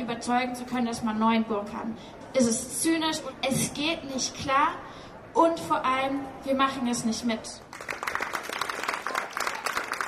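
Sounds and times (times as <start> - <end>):
speech: 0.2 - 7.6
bystanders applauding at a protest rally against new drilling: 7.8 - 10.0.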